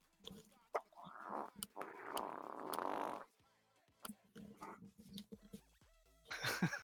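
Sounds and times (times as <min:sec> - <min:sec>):
fart: 0:01.1 - 0:03.3
laughter: 0:06.3 - 0:06.8.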